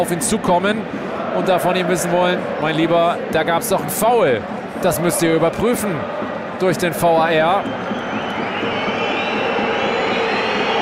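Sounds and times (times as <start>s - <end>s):
speech: 0.0s - 7.8s
TSG Hoffenheim football fans whistling in stadium: 7.2s - 10.8s.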